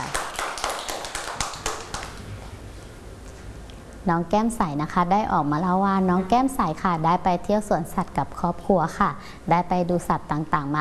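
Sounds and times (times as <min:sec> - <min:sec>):
children clapping their hands: 0:00.0 - 0:02.2
speech: 0:04.0 - 0:10.7.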